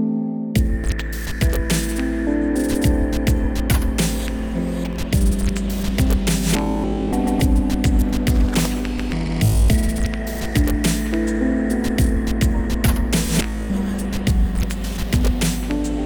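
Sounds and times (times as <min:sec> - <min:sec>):
instrumental music: 0:00.0 - 0:16.0.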